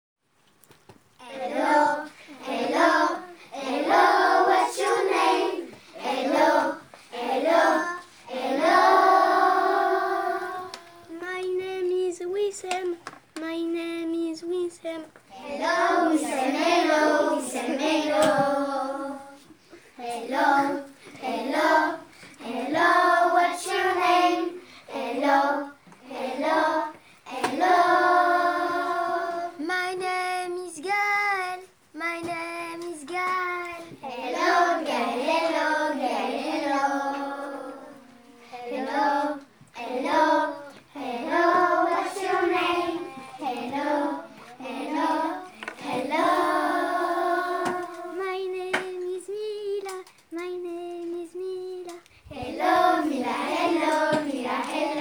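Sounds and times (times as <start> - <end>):
vocals: 1.2 - 54.9.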